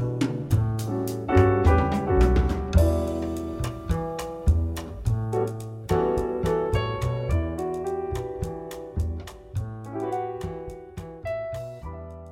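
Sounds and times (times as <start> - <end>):
latin jazz music in the key of D: 0.0 - 12.3.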